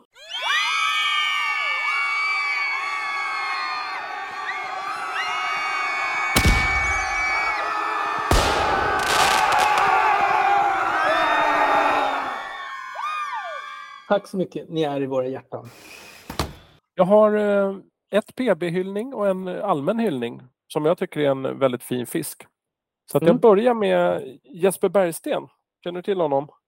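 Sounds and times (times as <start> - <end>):
live crowd cheering and whooping: 0.1 - 14.1
sharp bangs: 6.4 - 7.5, 8.3 - 10.1
speech: 14.1 - 16.0, 17.0 - 22.5, 23.1 - 26.6.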